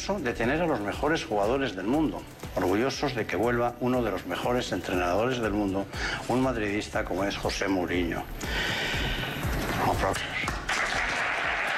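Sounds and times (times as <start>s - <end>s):
speech: 0.0s - 8.8s, 9.9s - 10.3s
audience applause: 10.2s - 11.7s.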